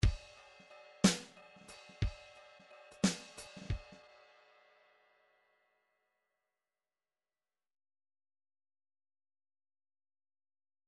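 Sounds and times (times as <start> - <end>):
MIDI file groove in 3/4 time: 0.0 - 4.4.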